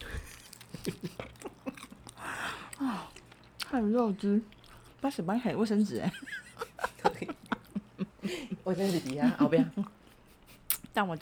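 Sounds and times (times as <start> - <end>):
chewing crispy-skinned food: 0.0 - 5.1
laughter: 0.7 - 2.0, 6.0 - 9.9
speech: 3.7 - 6.4, 8.7 - 10.0, 11.0 - 11.2.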